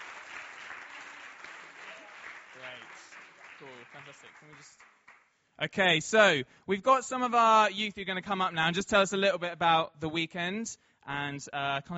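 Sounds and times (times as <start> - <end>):
audience applause for volunteers: 0.0 - 5.3
speech: 3.6 - 5.0, 5.6 - 11.9.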